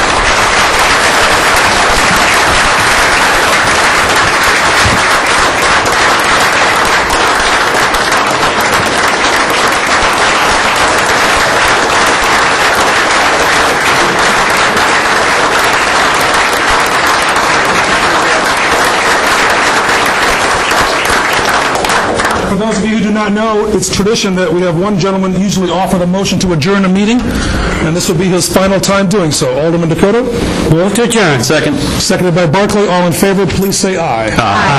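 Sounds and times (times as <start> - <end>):
round of applause from meeting audience: 0.0 - 22.7, 34.4 - 34.7
speech: 22.6 - 34.7.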